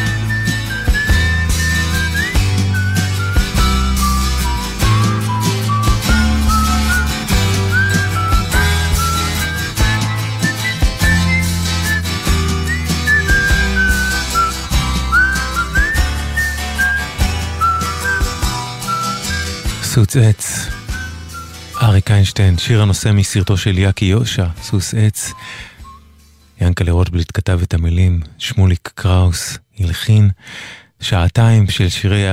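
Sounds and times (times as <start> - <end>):
full band backing with steady bass line: 0.0 - 19.9
person whistling a lilting melody: 0.0 - 19.9, 20.5 - 22.0, 24.4 - 26.4
speech: 20.1 - 20.8, 21.8 - 25.7, 26.6 - 32.3.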